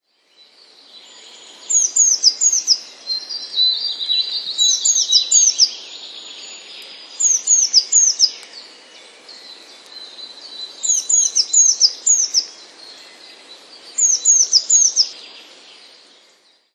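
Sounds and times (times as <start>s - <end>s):
background hiss: 0.0s - 16.7s
Eurasian blue tit singing: 1.2s - 12.6s, 13.8s - 15.2s.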